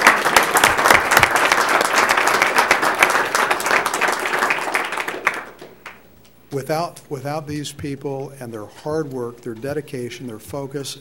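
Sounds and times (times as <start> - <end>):
audience applause: 0.0 - 6.0
speech: 6.6 - 10.9.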